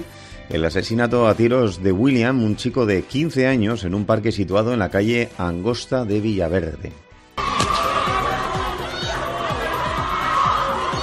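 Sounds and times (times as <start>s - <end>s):
speech: 0.0s - 7.0s
background music: 0.0s - 11.0s
people shouting: 7.4s - 11.0s.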